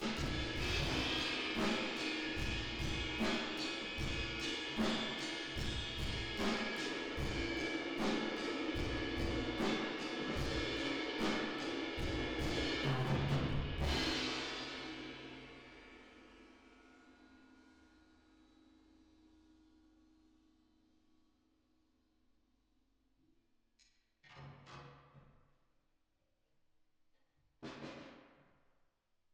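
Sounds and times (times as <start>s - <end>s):
drums with reverb: 0.0s - 16.8s.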